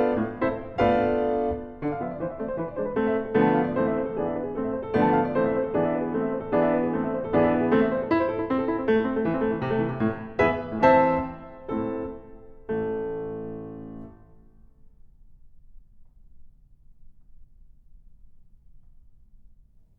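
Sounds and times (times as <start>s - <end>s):
music piece in A minor: 0.0s - 14.7s.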